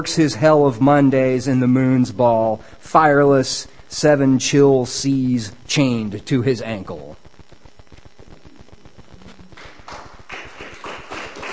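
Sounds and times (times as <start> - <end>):
speech: 0.0 - 7.2
audience clapping: 9.2 - 11.5.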